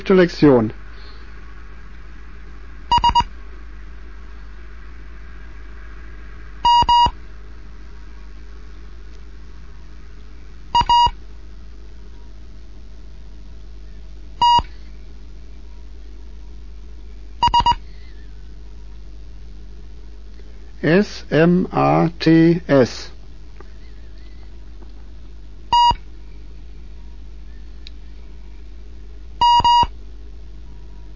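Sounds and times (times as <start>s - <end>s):
speech: 0.1s - 0.8s, 20.9s - 23.1s
Morse code beeps: 2.9s - 3.3s, 6.6s - 7.1s, 10.8s - 11.2s, 14.4s - 14.7s, 17.4s - 17.8s, 25.7s - 26.0s, 29.4s - 29.9s.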